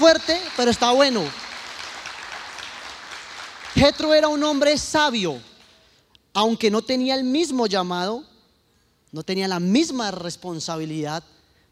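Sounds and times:
speech: 0:00.0 - 0:01.4, 0:03.8 - 0:05.5, 0:06.4 - 0:08.3, 0:09.1 - 0:11.4
audience applauding: 0:00.0 - 0:04.7.

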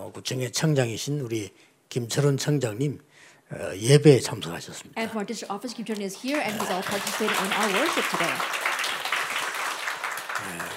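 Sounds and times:
speech: 0:00.1 - 0:08.6, 0:10.4 - 0:10.7
audience applauding: 0:06.2 - 0:10.7.

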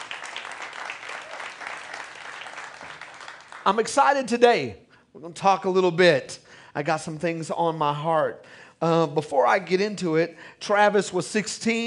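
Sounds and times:
audience applauding with hand claps: 0:00.0 - 0:03.9
speech: 0:03.6 - 0:11.8.

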